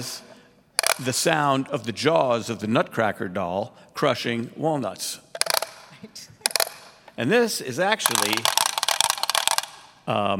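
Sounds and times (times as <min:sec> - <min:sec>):
speech: 0:00.0 - 0:00.3, 0:01.0 - 0:05.2, 0:07.2 - 0:08.6, 0:10.1 - 0:10.3
gas rattle being swung: 0:00.8 - 0:01.1, 0:05.3 - 0:07.0, 0:08.0 - 0:09.9.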